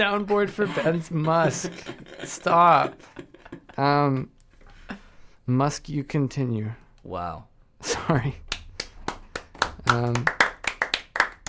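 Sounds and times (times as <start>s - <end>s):
speech: 0.0s - 4.4s, 5.5s - 8.4s, 9.9s - 10.4s
person clapping hands: 8.4s - 11.4s.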